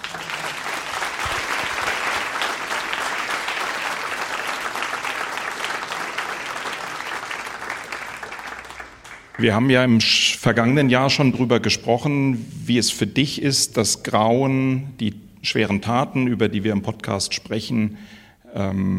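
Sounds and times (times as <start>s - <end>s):
audience applause: 0.0s - 9.8s
speech: 9.4s - 18.9s.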